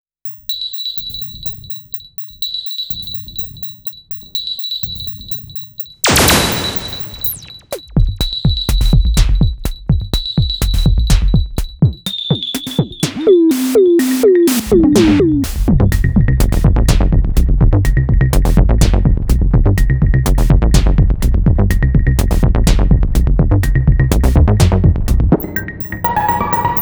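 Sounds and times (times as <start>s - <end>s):
techno music: 6.0s - 26.7s.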